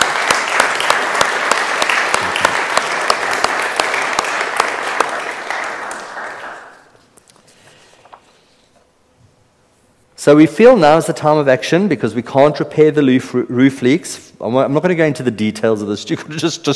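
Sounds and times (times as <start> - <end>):
audience applause: 0.0 - 6.9
speech: 10.2 - 16.7.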